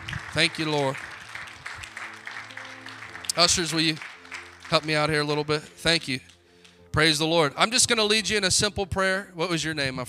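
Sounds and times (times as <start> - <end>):
round of applause: 0.0 - 6.8
speech: 0.4 - 1.1, 3.4 - 4.1, 4.7 - 6.3, 6.9 - 10.0.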